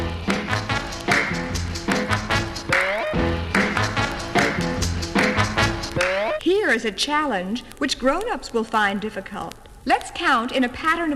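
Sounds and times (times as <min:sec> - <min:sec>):
upbeat instrumental track with sustained melodic tones: 0:00.0 - 0:06.4
sharp hand claps on the off-beats: 0:00.3 - 0:06.4
speech: 0:06.7 - 0:11.1.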